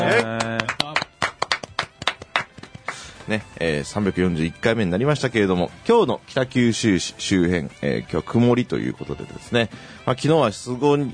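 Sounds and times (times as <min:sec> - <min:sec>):
hand claps from a small group opening a live talk show: 0:00.0 - 0:03.4
speech: 0:03.3 - 0:11.1.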